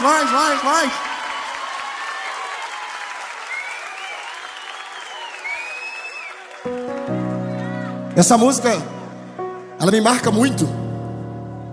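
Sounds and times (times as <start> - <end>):
speech: 0.0 - 1.1, 8.2 - 9.0, 9.8 - 10.8
audience applause: 0.0 - 8.9.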